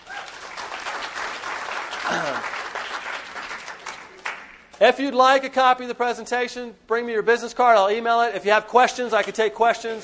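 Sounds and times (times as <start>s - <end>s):
audience applause: 0.0s - 4.6s
speech: 4.8s - 10.0s.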